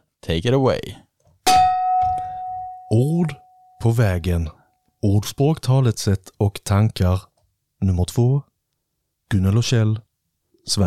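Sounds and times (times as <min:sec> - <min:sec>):
speech: 0:00.2 - 0:01.0, 0:02.9 - 0:08.5, 0:09.3 - 0:10.0, 0:10.6 - 0:10.8
gong being struck: 0:01.5 - 0:03.5.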